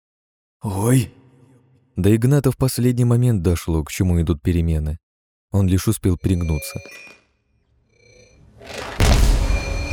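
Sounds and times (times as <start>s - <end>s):
speech: 0.6s - 1.2s, 2.0s - 7.2s
loud explosion: 8.7s - 9.9s.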